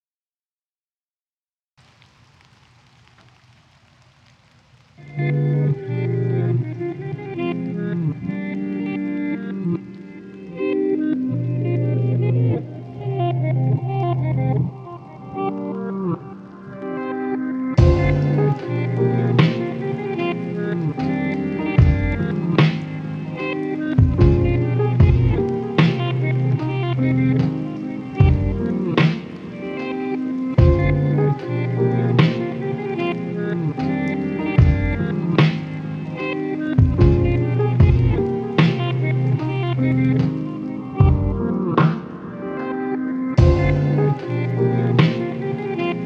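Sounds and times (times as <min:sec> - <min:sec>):
lofi music: 0:04.2 - 0:46.0.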